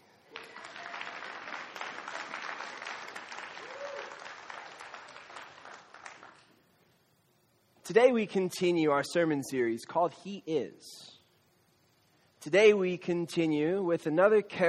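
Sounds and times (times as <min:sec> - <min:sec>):
audience clapping: 0:00.0 - 0:06.6
speech: 0:07.9 - 0:11.1, 0:12.4 - 0:14.6.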